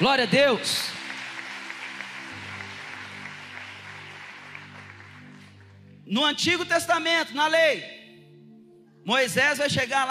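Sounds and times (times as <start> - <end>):
speech: 0.0 - 1.0, 6.1 - 8.0, 9.0 - 10.1
applause: 0.0 - 6.0.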